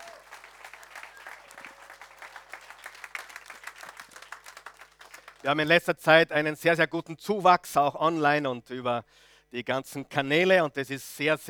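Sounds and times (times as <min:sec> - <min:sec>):
crowd applause: 0:00.0 - 0:05.5
speech: 0:05.4 - 0:11.4.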